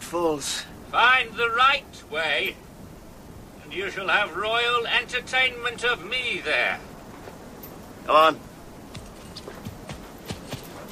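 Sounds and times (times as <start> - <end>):
speech: 0.1 - 2.6, 3.7 - 6.9, 8.0 - 8.5
horse hooves clip-clopping among rocks: 8.8 - 10.9.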